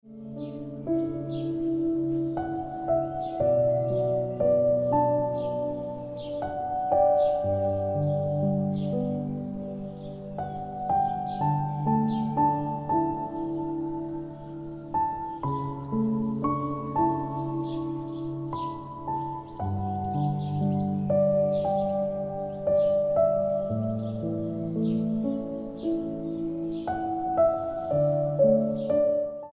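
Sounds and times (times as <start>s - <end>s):
piano ringtone music: 0.1s - 29.5s.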